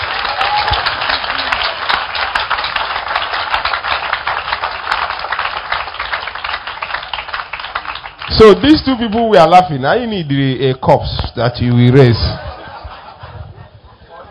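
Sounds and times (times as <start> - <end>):
audience applauding: 0.0 - 9.6
speech: 8.4 - 12.4
laughter: 12.0 - 14.2.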